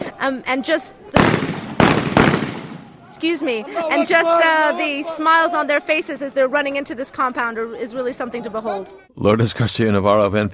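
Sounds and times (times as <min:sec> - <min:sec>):
noisy outdoor scene: 0:00.0 - 0:10.5
speech: 0:00.2 - 0:01.4, 0:03.1 - 0:10.5
celebratory gunfire: 0:01.2 - 0:03.0.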